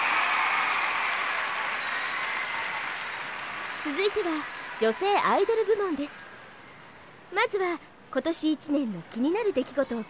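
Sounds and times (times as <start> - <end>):
audience applause: 0.0 - 6.8
speech: 3.8 - 6.3, 7.3 - 10.0.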